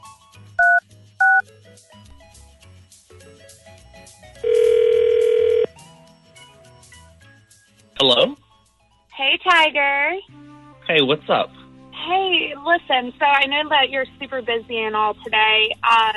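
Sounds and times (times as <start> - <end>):
telephone number being dialed: 0.6 - 1.4, 4.4 - 5.7
speech: 9.6 - 10.3, 10.9 - 11.6, 12.1 - 16.1.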